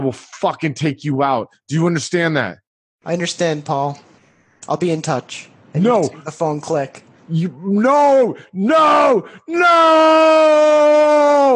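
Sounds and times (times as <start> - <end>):
speech: 0.0 - 11.5
person screaming while driving: 8.6 - 11.5.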